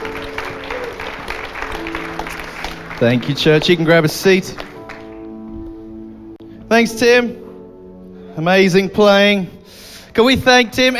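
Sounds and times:
church congregation applauding a pastor during a morning service: 0:00.0 - 0:05.3
speech: 0:03.0 - 0:04.6, 0:06.7 - 0:07.4, 0:08.4 - 0:09.6, 0:10.2 - 0:10.9.

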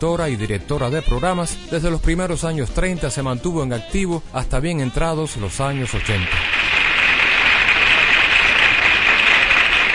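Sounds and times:
speech: 0:00.0 - 0:06.6
audience applause: 0:05.7 - 0:09.9.

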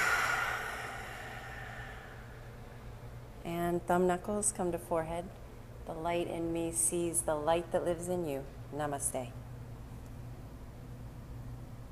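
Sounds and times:
soft open-mouthed exhale during yoga practice: 0:00.0 - 0:02.5
speech: 0:03.8 - 0:09.4.

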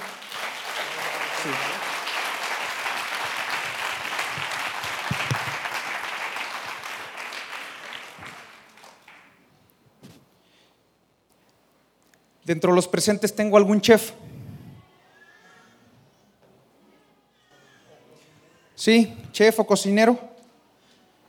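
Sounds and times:
audience applause: 0:00.0 - 0:09.4
speech: 0:01.4 - 0:01.8, 0:12.5 - 0:14.2, 0:18.8 - 0:20.3.

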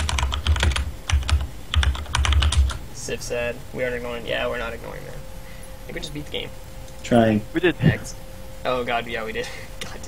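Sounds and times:
typing on a computer keyboard: 0:00.0 - 0:02.8
speech: 0:03.1 - 0:05.3, 0:05.9 - 0:10.0.

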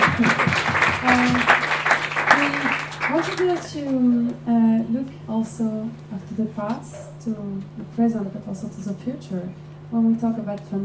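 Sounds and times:
audience applause: 0:00.0 - 0:03.7
speech: 0:00.2 - 0:00.4, 0:03.6 - 0:10.8.

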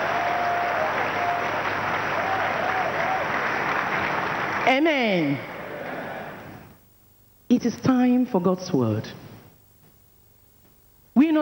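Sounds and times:
large group clapping: 0:00.0 - 0:06.7
speech: 0:04.7 - 0:05.5, 0:07.6 - 0:09.2.

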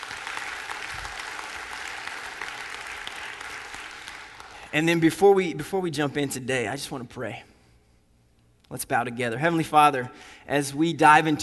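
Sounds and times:
audience applause: 0:00.0 - 0:04.6
speech: 0:04.7 - 0:07.5, 0:08.7 - 0:11.4.

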